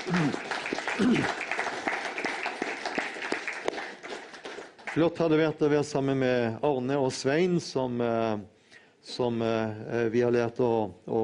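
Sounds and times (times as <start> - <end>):
audience applause: 0.0 - 5.2
speech: 0.1 - 1.4, 5.0 - 11.2.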